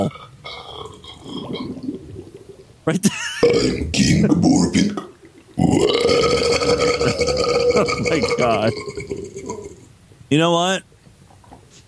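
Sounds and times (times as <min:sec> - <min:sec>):
speech: 0:00.0 - 0:00.7, 0:02.9 - 0:06.4, 0:07.8 - 0:09.2, 0:10.3 - 0:10.9
stomach gurgling and bubbling from indigestion: 0:00.0 - 0:02.8, 0:03.5 - 0:09.9.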